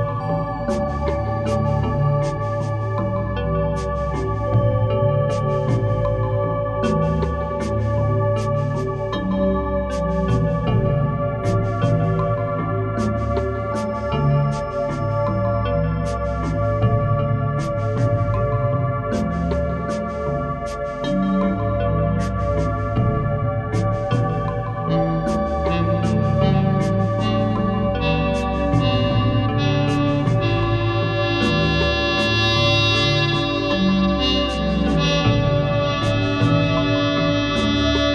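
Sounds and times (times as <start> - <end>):
tropical rainforest zen spa music: 0.0 - 38.1.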